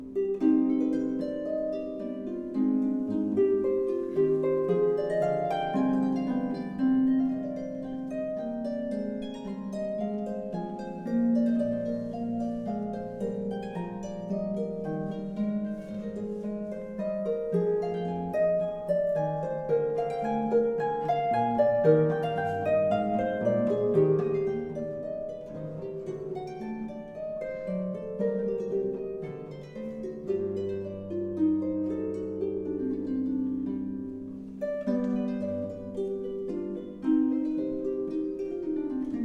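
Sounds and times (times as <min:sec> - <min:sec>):
allemande: 0:00.0 - 0:39.2.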